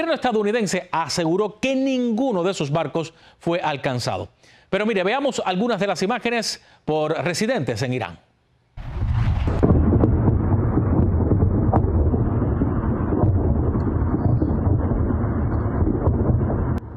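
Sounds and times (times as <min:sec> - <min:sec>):
speech: 0:00.0 - 0:08.3
explosions striking a dock on an Iranian island: 0:08.8 - 0:16.9.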